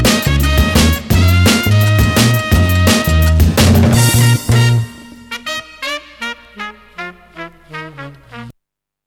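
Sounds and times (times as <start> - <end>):
jingle: 0.1 - 5.9.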